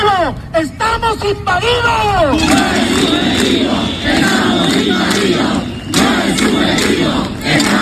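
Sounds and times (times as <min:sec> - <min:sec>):
speech: 0:00.3 - 0:05.6
protesting crowd shouting in unison: 0:02.3 - 0:07.8.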